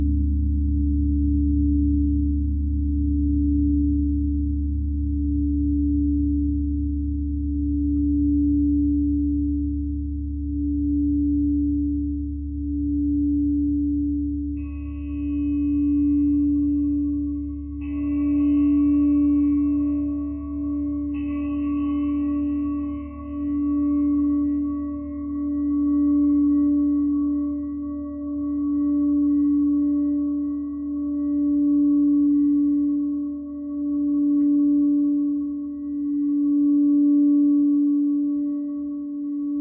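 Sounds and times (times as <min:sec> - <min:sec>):
singing bowls droning: 0:00.0 - 0:39.5
bright singing bowls struck: 0:14.5 - 0:39.5.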